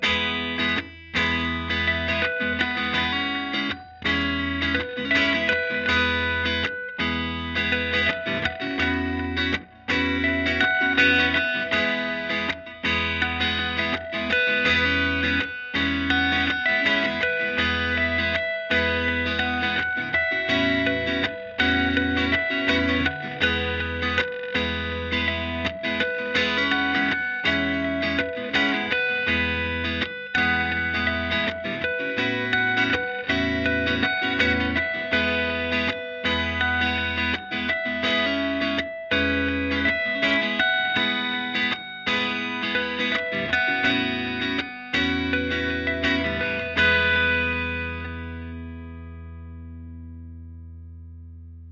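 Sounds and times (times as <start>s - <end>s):
harmonics: 0.0s - 49.2s.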